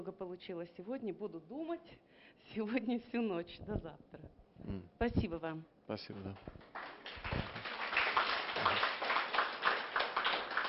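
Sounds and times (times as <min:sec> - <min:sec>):
speech: 0:00.0 - 0:06.8
audience applause: 0:06.6 - 0:10.6.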